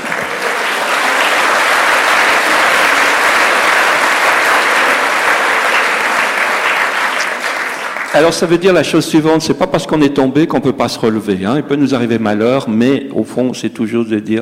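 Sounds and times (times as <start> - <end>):
audience applause: 0.0 - 8.7
speech: 8.2 - 14.4.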